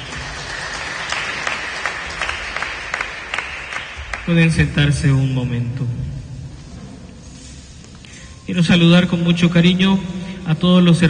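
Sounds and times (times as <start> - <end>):
audience clapping applause: 0.0 - 4.3
speech: 4.3 - 6.2, 8.5 - 11.0.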